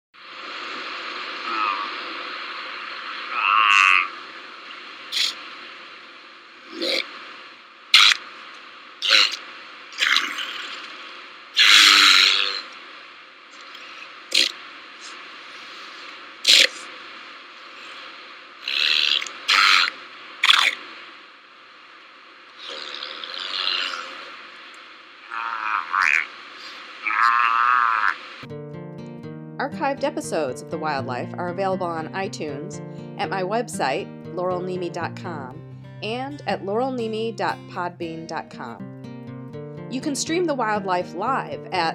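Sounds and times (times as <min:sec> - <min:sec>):
Hawaiian monk seal vocalizations: 0:01.4 - 0:02.2, 0:02.9 - 0:04.2, 0:05.1 - 0:05.4, 0:08.0 - 0:08.2, 0:09.0 - 0:09.4, 0:10.0 - 0:10.9, 0:11.6 - 0:12.7, 0:13.6 - 0:14.6, 0:16.4 - 0:16.9, 0:17.7 - 0:20.8, 0:22.6 - 0:24.4, 0:25.2 - 0:28.3
speech: 0:29.7 - 0:38.9, 0:39.9 - 0:41.9.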